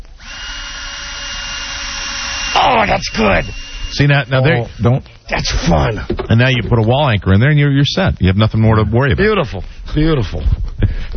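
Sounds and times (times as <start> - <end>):
electric drill drilling a hole in a wall: 0.0 - 6.1
speech: 2.7 - 10.7.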